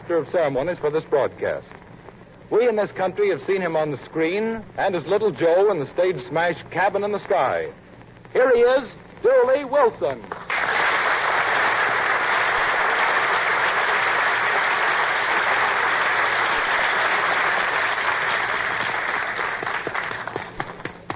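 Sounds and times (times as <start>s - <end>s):
speech: 0.1s - 1.8s, 2.5s - 10.7s
audience applause: 10.4s - 21.1s.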